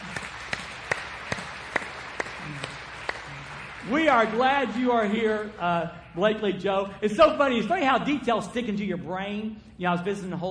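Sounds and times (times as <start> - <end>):
sparse scattered audience handclaps: 0.0 - 5.8
speech: 3.9 - 10.4.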